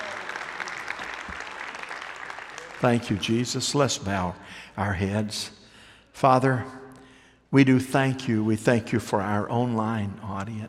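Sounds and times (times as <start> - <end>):
audience applauding: 0.0 - 3.4
speech: 2.8 - 5.6, 6.2 - 6.8, 7.5 - 10.6.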